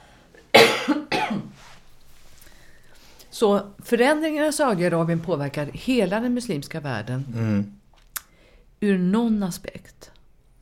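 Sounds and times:
coughing: 0.5 - 1.6
speech: 3.4 - 7.8, 8.8 - 10.1.

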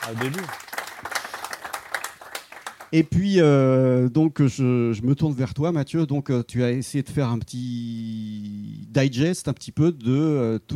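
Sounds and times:
room full of people applauding: 0.0 - 2.9
speech: 0.1 - 0.7, 2.9 - 10.7.

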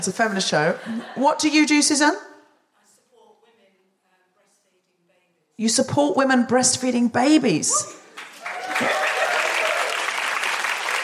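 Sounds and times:
speech: 0.0 - 2.3, 5.6 - 8.0, 8.8 - 9.0
audience applause: 8.2 - 11.0.

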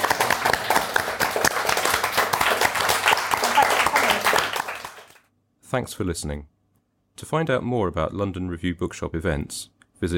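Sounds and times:
audience applause: 0.0 - 5.3
speech: 5.7 - 6.6, 7.2 - 10.1.

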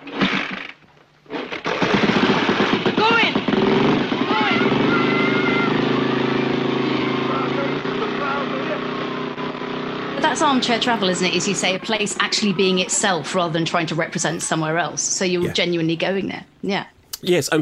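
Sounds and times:
motorcycle engine of a rainbow bike ridden T.T. style: 1.9 - 14.0
speech: 10.4 - 17.6.

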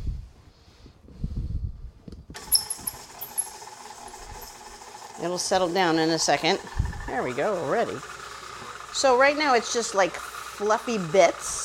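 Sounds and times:
squeaky electric mixer creaming butter and sugar: 2.4 - 11.6
speech: 5.2 - 8.1, 9.0 - 11.6.

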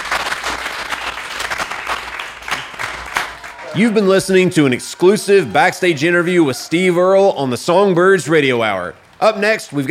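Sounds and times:
audience applause: 0.0 - 5.4
speech: 3.8 - 9.9.

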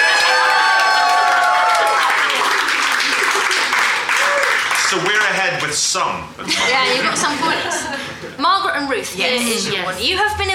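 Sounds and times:
crowd cheering wildly: 0.0 - 5.1
laughter: 2.2 - 4.0, 6.4 - 8.4
speech: 5.7 - 10.5.

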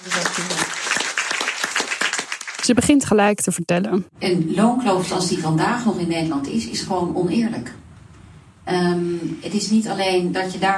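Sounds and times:
speech: 0.0 - 0.6, 2.6 - 7.8, 8.7 - 10.7
audience applause welcoming a government minister on stage: 0.0 - 2.8.

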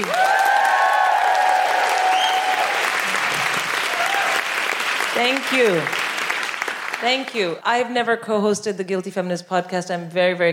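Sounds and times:
live audience clapping for a stand-up comedian: 0.0 - 7.6
speech: 5.2 - 6.0, 7.0 - 10.5.

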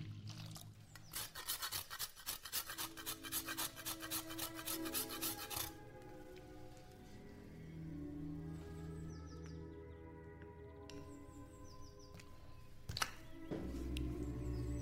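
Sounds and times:
low hum: 0.0 - 1.1, 5.8 - 14.8
old-time music with steady held notes: 0.0 - 14.8
fast rough scraping or grating: 0.9 - 5.8.

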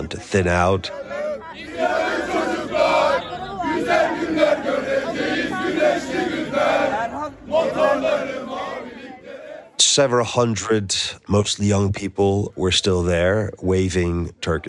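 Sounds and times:
speech: 0.0 - 1.1, 10.0 - 14.6
large crowd chanting in unison: 0.0 - 9.8.

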